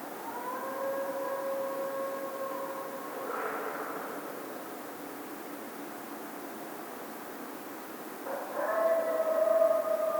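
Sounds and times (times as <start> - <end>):
coyote howling: 0.2 - 3.4, 8.3 - 10.1.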